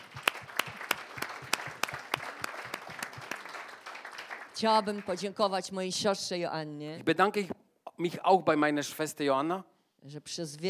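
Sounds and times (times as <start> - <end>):
audience applause: 0.0 - 5.2
rhythmic clapping: 0.0 - 5.2
speech: 4.6 - 10.6.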